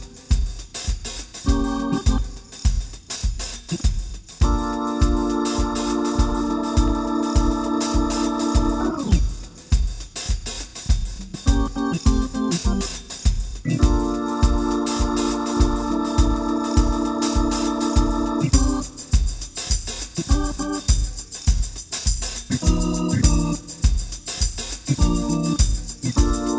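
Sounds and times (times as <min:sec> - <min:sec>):
Motown groove etude without bass: 0:00.0 - 0:26.5.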